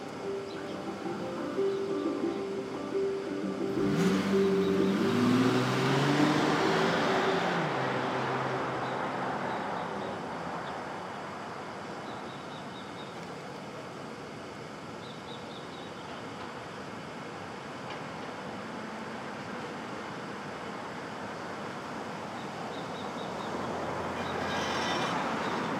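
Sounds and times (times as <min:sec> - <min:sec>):
passing vehicle, possibly a train, with whining engine tone in Brooklyn: 0:00.0 - 0:12.0, 0:18.4 - 0:25.7
low traffic hum in Brooklyn: 0:00.0 - 0:25.7.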